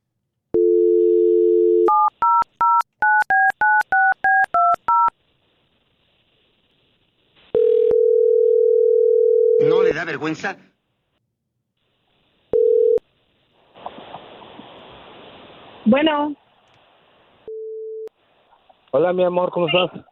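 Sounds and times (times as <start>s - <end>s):
telephone dial tone: 0.6s - 5.1s, 7.6s - 9.6s, 12.6s - 13.0s
speech: 10.1s - 10.7s, 15.9s - 16.4s, 18.9s - 20.1s.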